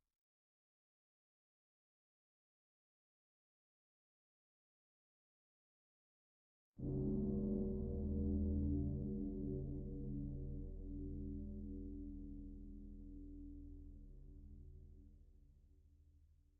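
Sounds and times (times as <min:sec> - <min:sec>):
slow gong: 0:06.8 - 0:14.2.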